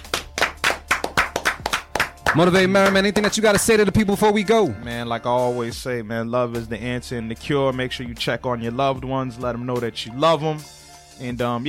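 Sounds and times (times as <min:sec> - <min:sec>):
hand claps: 0:00.0 - 0:03.7
speech: 0:02.3 - 0:11.6.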